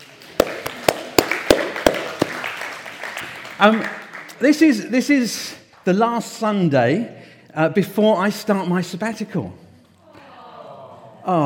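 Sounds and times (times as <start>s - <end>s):
scattered audience clapping: 0.0s - 4.7s
speech: 3.6s - 9.6s, 11.2s - 11.4s.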